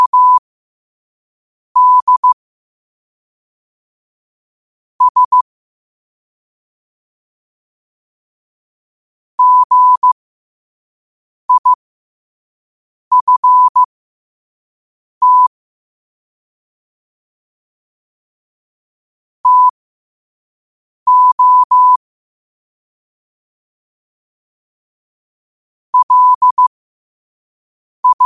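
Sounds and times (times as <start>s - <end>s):
morse code at 5 wpm: 0.0s - 0.4s, 1.8s - 2.4s, 5.0s - 5.4s, 9.4s - 10.2s, 11.5s - 11.8s, 13.1s - 13.9s, 15.2s - 15.5s, 19.4s - 19.8s, 21.1s - 22.0s, 26.0s - 26.7s, 28.0s - 28.2s.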